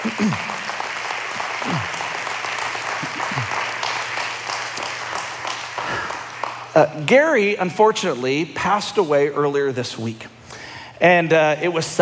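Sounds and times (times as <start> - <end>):
speech: 0.0 - 0.5, 6.8 - 10.4, 11.0 - 12.0
crowd applauding: 0.0 - 6.8.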